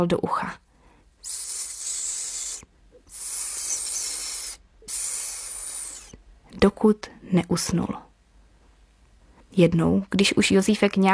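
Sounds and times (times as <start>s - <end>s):
speech: 0.0s - 0.6s, 6.6s - 8.1s, 9.5s - 11.1s
snake hissing softly: 1.2s - 6.3s.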